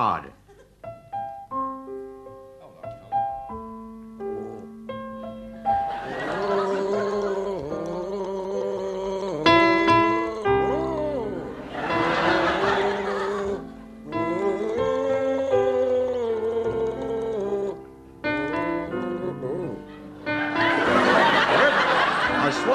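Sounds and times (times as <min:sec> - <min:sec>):
laughter: 0:05.8 - 0:08.2, 0:10.6 - 0:13.7, 0:20.3 - 0:22.7
man gargling a lullaby tune in a panel game contest: 0:06.2 - 0:11.7, 0:13.0 - 0:19.8.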